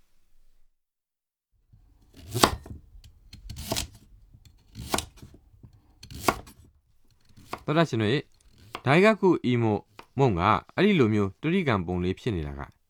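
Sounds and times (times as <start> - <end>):
knife cutting a sweet potato on a board: 1.8 - 9.0, 9.9 - 10.2
speech: 7.7 - 12.8.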